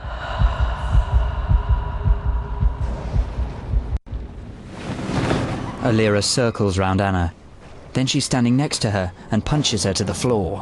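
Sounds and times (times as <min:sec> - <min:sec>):
loud heartbeat thumping: 0:00.0 - 0:04.5
low whooshing hum: 0:00.0 - 0:05.8
speech: 0:05.9 - 0:10.6.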